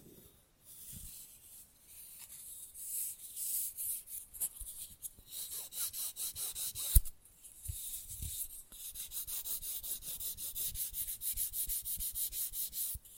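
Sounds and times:
nail filing: 3.7 - 13.1.

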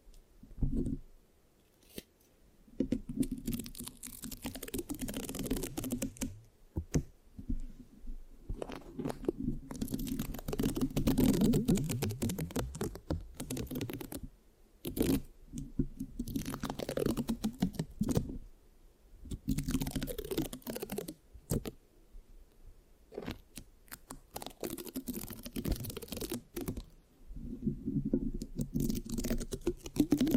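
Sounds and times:
sticky scratching on a microphone: 3.0 - 7.0, 8.5 - 14.3, 14.9 - 18.4, 19.4 - 21.7, 23.1 - 30.3.

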